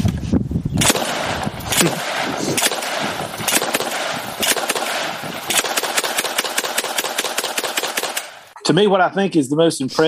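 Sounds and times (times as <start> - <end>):
fully automatic 12-gauge shotgun firing many rounds: 0.8 - 8.5
speech: 1.8 - 2.0, 8.8 - 10.0.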